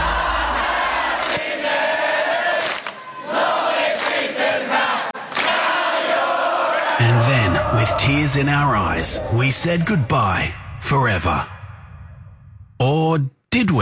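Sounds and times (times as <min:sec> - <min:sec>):
large concert crowd cheering: 0:00.0 - 0:10.5
concert crowd clapping: 0:00.5 - 0:01.5, 0:02.6 - 0:03.0, 0:04.0 - 0:04.3, 0:05.3 - 0:05.7
speech: 0:07.1 - 0:11.6, 0:12.8 - 0:13.7.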